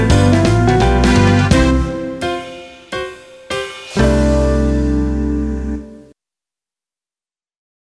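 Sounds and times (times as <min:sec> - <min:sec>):
karaoke backing track: 0:00.0 - 0:06.0.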